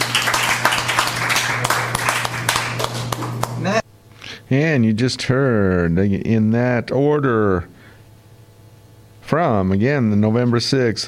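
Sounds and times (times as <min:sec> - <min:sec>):
audience applauding: 0:00.0 - 0:03.8
speech: 0:04.5 - 0:07.8, 0:09.3 - 0:11.0.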